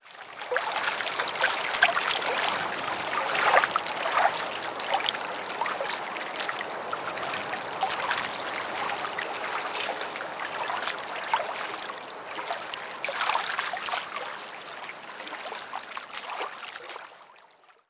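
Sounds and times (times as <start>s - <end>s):
quiet water at docks: 0.0s - 17.8s.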